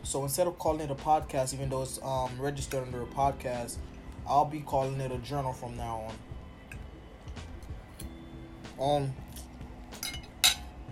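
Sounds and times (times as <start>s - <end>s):
speech: 0.0s - 6.3s, 8.8s - 9.2s
cutlery clinking on a plate while eating spaghetti: 10.0s - 10.7s.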